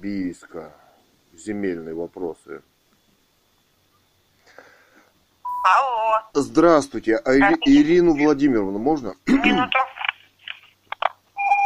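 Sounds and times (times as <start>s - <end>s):
speech: 0.0s - 2.7s, 5.6s - 9.8s
steady single-pitched telephone tone of a call to a city administration office: 5.5s - 5.8s, 11.4s - 11.6s.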